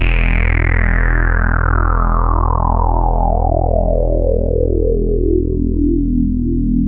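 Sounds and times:
Juno synth sweep: 0:00.0 - 0:06.8.

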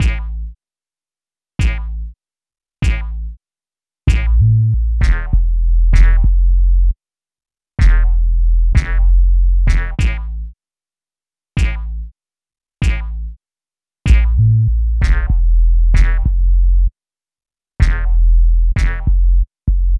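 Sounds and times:
hip-hop bass: 0:00.0 - 0:00.5, 0:01.6 - 0:02.1, 0:02.8 - 0:03.3, 0:04.1 - 0:06.9, 0:07.8 - 0:10.5, 0:11.6 - 0:12.0, 0:14.1 - 0:16.9, 0:17.8 - 0:19.9.

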